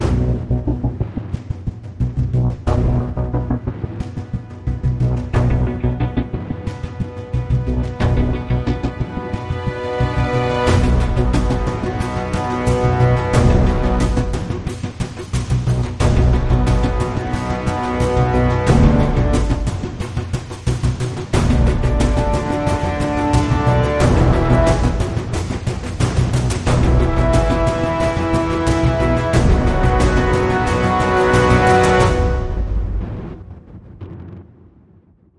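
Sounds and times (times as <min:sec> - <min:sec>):
percussion: 0:00.0 - 0:33.4.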